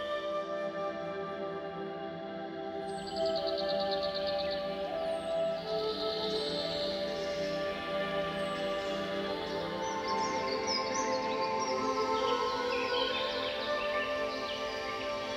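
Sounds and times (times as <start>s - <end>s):
relaxation music: 0.0s - 15.3s.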